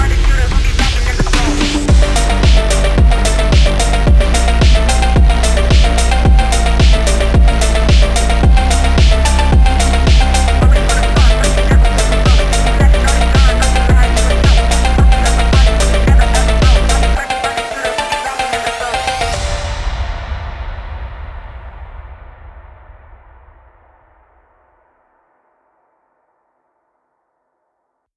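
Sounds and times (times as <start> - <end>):
hard EDM phonk gaming music: 0.0 - 19.9.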